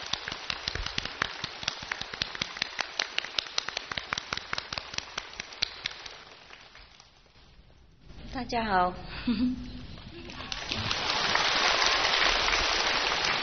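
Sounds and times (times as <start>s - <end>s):
audience applause: 0.0s - 6.8s, 10.2s - 13.4s
speech: 8.4s - 9.8s.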